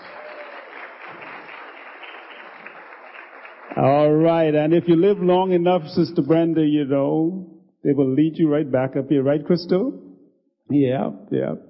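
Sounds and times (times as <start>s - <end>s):
audience applause: 0.0s - 5.6s
speech: 3.7s - 10.0s, 10.7s - 11.6s.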